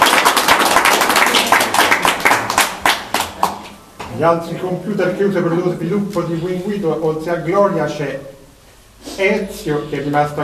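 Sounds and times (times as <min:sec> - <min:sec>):
applause: 0:00.0 - 0:03.8
speech: 0:04.2 - 0:08.3, 0:09.1 - 0:10.4.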